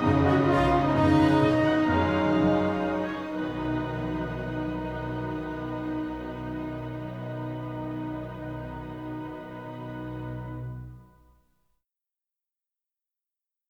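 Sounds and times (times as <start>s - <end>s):
battle sequence music: 0.0s - 10.5s.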